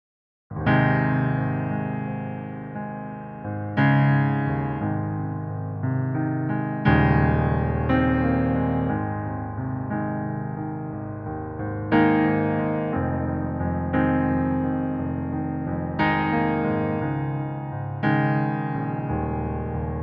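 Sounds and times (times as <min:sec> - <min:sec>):
piano playback in A flat major: 0:00.5 - 0:20.0.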